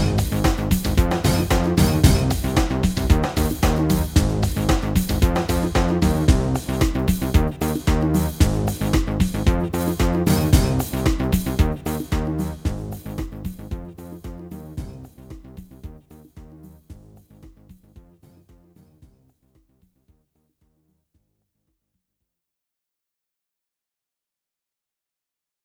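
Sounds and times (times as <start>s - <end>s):
backing music: 0.0s - 19.0s.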